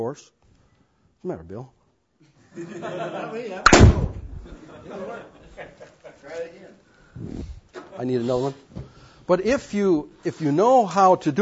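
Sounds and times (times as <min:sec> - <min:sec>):
speech: 0:00.0 - 0:00.4, 0:01.2 - 0:01.8, 0:02.6 - 0:11.4
laughter: 0:02.4 - 0:03.7, 0:04.4 - 0:06.8
balloon popping: 0:03.7 - 0:04.5.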